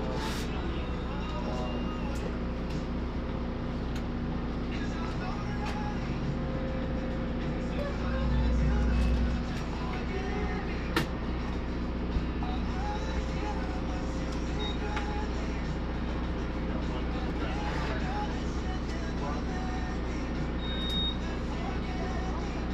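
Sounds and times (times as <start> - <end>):
louder low rumble: 0.0 - 19.9
engine-like hum inside mobile blood donation bus: 0.0 - 22.7
short high beep: 20.6 - 21.2.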